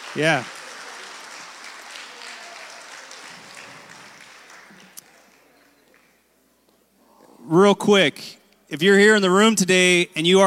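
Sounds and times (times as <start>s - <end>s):
audience clapping hands: 0.0s - 6.3s
speech: 0.1s - 0.6s, 7.5s - 10.4s.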